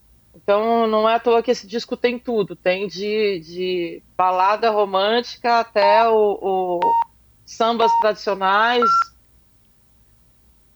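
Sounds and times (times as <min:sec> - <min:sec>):
speech: 0:00.4 - 0:09.1
radio station time signal beep: 0:06.8 - 0:07.1, 0:07.8 - 0:08.1, 0:08.8 - 0:09.1.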